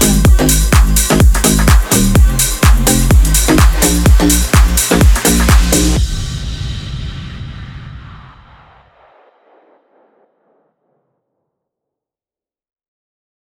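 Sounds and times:
upbeat tropical deep house music: 0.0 - 6.2.

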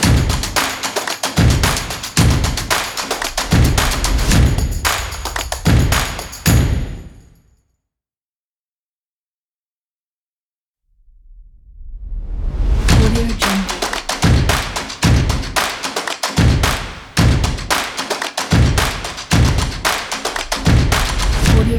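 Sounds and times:
claps: 0.0 - 6.7, 12.9 - 21.5
stomps: 0.0 - 7.3, 12.9 - 21.6.

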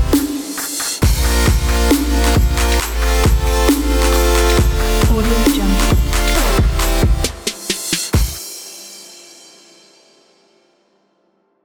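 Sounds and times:
future bass music: 0.0 - 8.4.

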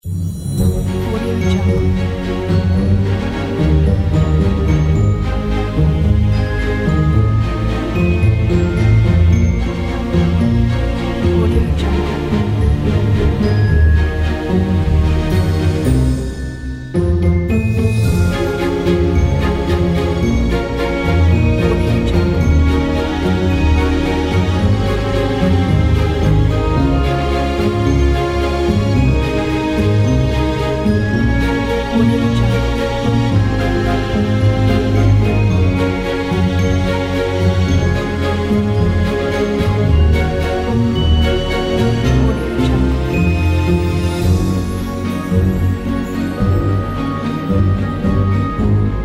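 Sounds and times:
inspiring classical music: 0.0 - 49.0.

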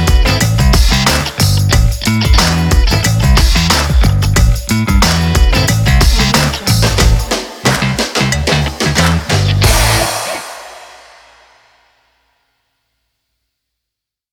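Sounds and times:
energetic rock music: 0.0 - 11.4.

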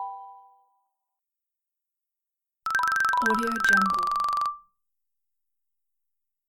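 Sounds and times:
cellphone dinging: 2.7 - 4.6.

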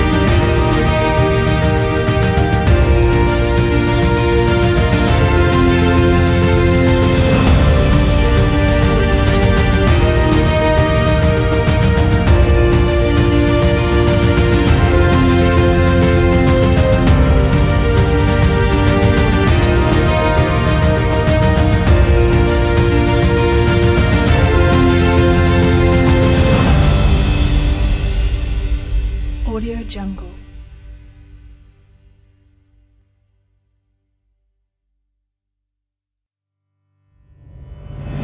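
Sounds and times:
inspirational cinematic piano music: 0.0 - 31.8.

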